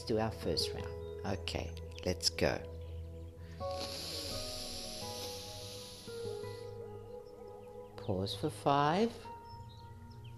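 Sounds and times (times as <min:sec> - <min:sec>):
quiet sustained musical tones: 0:00.0 - 0:10.3
speech: 0:00.1 - 0:02.7, 0:08.0 - 0:09.3
slow exhale during a guided breathing exercise: 0:03.6 - 0:06.8.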